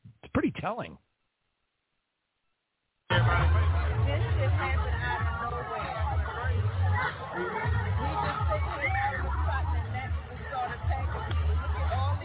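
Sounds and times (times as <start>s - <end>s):
speech: 0.4s - 1.1s
crowd panicking from mosquito bites: 3.1s - 12.2s.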